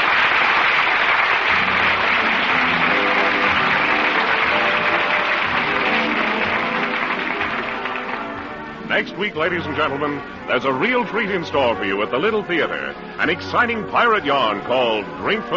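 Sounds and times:
large theater audience applause: 0.0s - 10.0s
speech: 9.0s - 15.5s.

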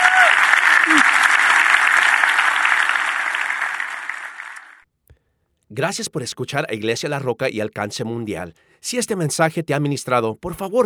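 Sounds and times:
audience applause: 0.0s - 4.8s
speech: 5.8s - 10.8s.

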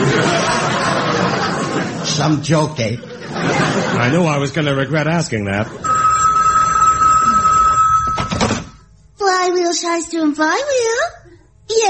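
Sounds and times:
laughter: 0.0s - 4.7s, 5.4s - 7.8s
speech: 2.2s - 5.9s, 9.7s - 11.8s
telephone ringing in a radio comedy: 5.8s - 8.9s.

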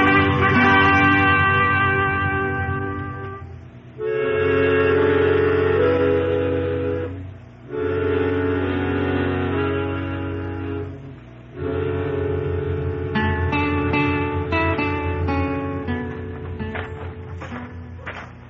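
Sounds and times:
train idling at a depot: 0.0s - 18.4s.

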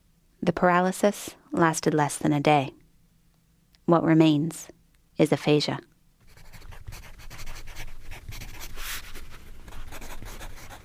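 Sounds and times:
speech: 0.5s - 2.8s, 3.9s - 5.9s
pen scratching across paper while writing: 6.3s - 10.8s.

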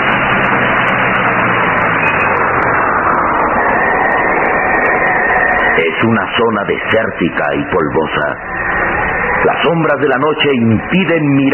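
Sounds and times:
car driving and coming to a stop: 0.0s - 11.5s
speech: 5.8s - 8.8s, 9.4s - 11.5s.

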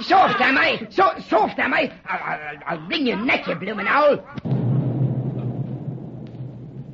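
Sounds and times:
speech: 0.1s - 4.7s
distant explosion: 4.4s - 6.9s.

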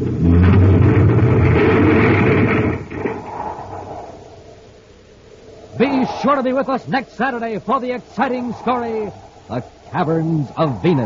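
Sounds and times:
tunnel car crashing into debris: 0.0s - 4.3s
rattling: 0.0s - 4.6s
speech: 6.2s - 11.0s.

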